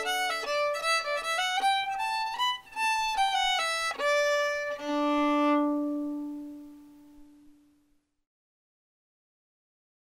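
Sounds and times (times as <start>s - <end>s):
fiddle playing a hornpipe: 0.0s - 7.3s.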